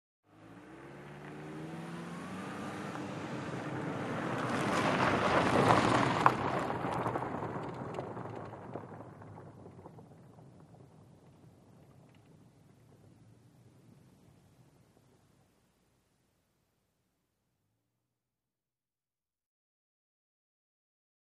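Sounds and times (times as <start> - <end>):
sedan driving on pavement and gravel at medium speed: 0.3 - 15.6.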